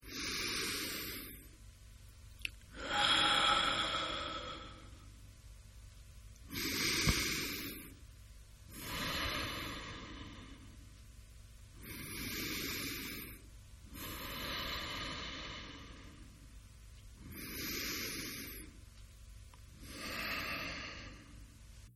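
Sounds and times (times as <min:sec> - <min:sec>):
man breathing deep and slow: 0:00.0 - 0:01.6, 0:02.7 - 0:05.1, 0:06.5 - 0:08.0, 0:08.7 - 0:10.8, 0:11.8 - 0:16.6, 0:17.2 - 0:18.8, 0:19.7 - 0:21.6.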